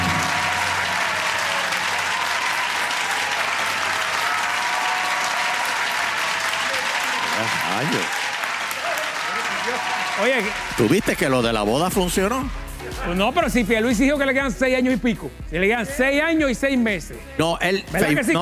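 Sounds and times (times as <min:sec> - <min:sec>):
audience applause: 0:00.0 - 0:11.8
speech: 0:07.8 - 0:08.2, 0:09.8 - 0:18.3.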